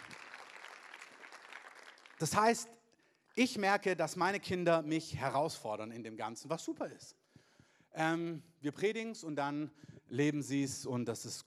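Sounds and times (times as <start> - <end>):
audience applause: 0.0 - 2.6
speech: 2.2 - 2.8, 3.4 - 7.2, 7.9 - 11.4.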